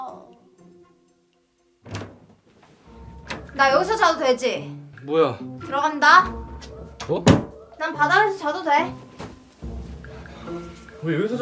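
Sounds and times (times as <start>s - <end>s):
door shut with a heavy thunk in a home: 1.8s - 2.4s, 7.0s - 7.6s
door rattling after the impact: 1.8s - 2.5s, 3.1s - 4.0s, 7.0s - 7.6s
speech: 3.6s - 6.4s, 7.1s - 9.0s, 10.5s - 11.4s.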